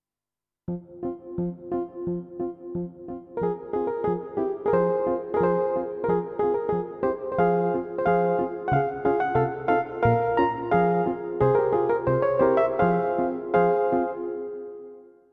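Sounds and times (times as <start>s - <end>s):
mellow electric piano: 0.7s - 15.3s.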